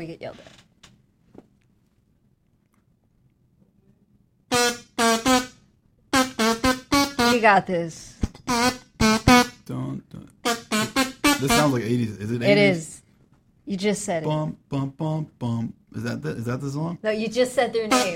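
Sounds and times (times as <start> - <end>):
speech: 0.0 - 0.6, 7.4 - 8.8, 9.7 - 10.3, 11.4 - 13.0, 13.7 - 18.1
kazoo being played: 4.5 - 7.6, 8.3 - 12.9, 17.8 - 18.1.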